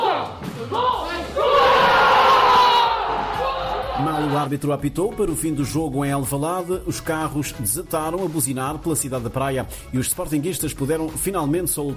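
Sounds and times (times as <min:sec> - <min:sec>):
football fans cheering a goal: 0:00.0 - 0:04.5
speech: 0:04.4 - 0:11.9.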